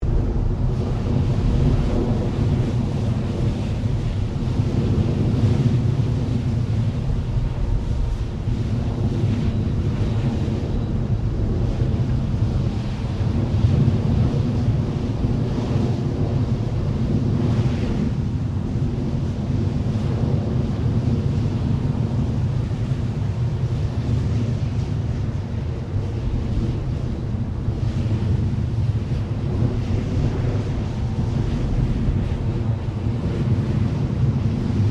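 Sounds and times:
refinery gas burnoff flame roaring: 0.0 - 34.8.

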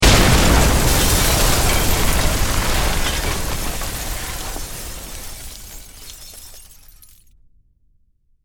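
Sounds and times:
explosion: 0.0 - 7.1
building crashing: 0.0 - 7.2.

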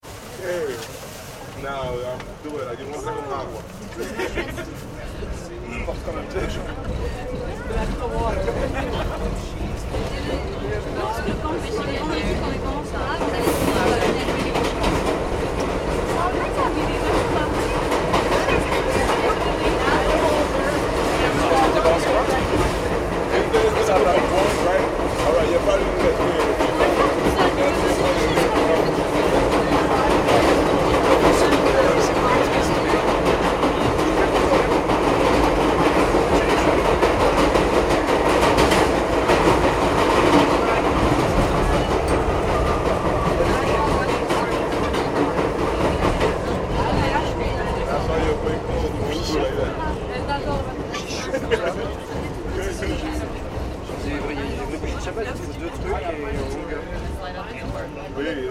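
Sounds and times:
NYC subway train starting, running and stopping, heard from inside: 0.0 - 58.5
laughter: 3.8 - 5.4, 8.3 - 9.4, 50.9 - 52.4.

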